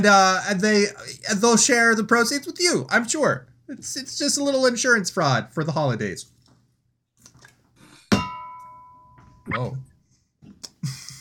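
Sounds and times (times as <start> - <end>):
speech: 0.0 - 6.4, 9.5 - 9.9
gong-like ring from striking water bottle: 8.1 - 9.5.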